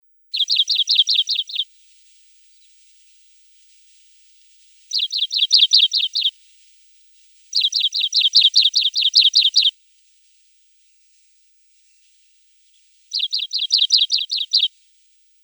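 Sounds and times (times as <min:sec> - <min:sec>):
Richard's pipit harsh high calls: 0:00.4 - 0:01.6, 0:04.9 - 0:06.3, 0:07.5 - 0:09.7, 0:13.1 - 0:14.7.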